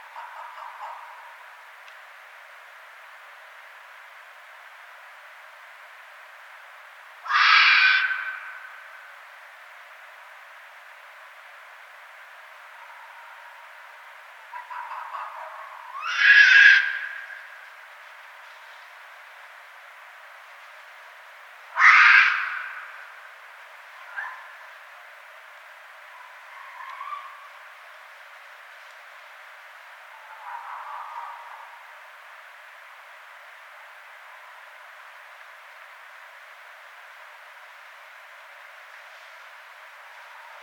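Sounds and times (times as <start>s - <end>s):
quiet background hiss: 0.0s - 40.6s
red fox hoarse scream: 7.3s - 8.5s, 15.9s - 17.2s, 21.7s - 22.9s.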